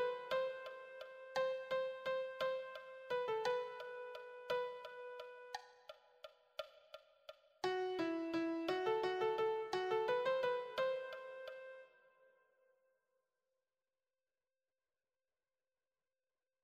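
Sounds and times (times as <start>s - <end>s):
piano melody: 0.0s - 5.6s, 7.6s - 11.9s.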